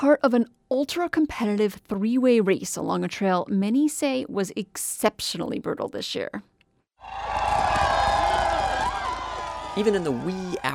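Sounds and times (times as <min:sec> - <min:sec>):
speech: 0:00.0 - 0:07.7, 0:09.8 - 0:10.7
raucous crowd on Front Street in Nome, Alaska cheering for a sled-dog musher: 0:07.0 - 0:10.7.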